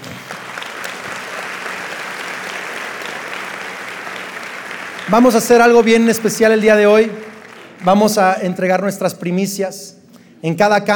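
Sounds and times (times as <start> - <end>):
audience applauding loudly: 0.0 - 8.6
speech: 5.1 - 10.9.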